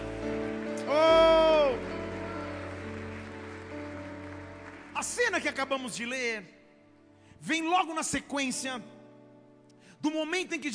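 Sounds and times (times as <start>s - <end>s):
people clapping: 0.0s - 6.0s
speech: 5.1s - 6.6s, 7.4s - 9.0s, 10.0s - 10.7s.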